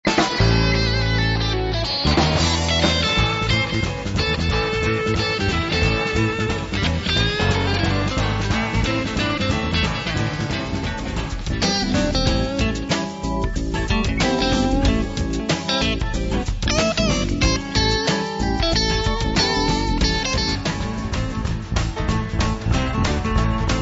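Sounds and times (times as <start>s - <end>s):
blazing blues music: 0.0s - 23.8s.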